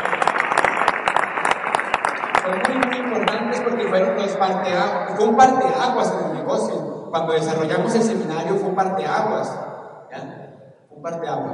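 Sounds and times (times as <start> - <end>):
audience applause: 0.0 - 4.1
speech: 2.5 - 10.3, 11.0 - 11.5.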